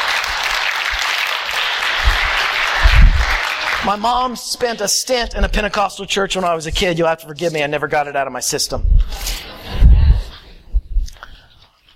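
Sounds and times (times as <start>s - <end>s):
audience clapping: 0.0s - 4.4s
low thumps: 2.0s - 3.4s, 5.2s - 5.8s, 6.7s - 7.0s, 8.7s - 11.2s
speech: 3.8s - 9.4s.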